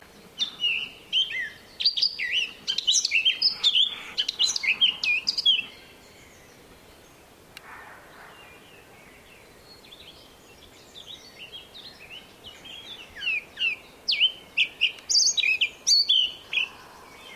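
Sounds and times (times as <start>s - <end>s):
Eurasian blackcap singing: 0.4s - 6.5s, 9.2s - 16.7s.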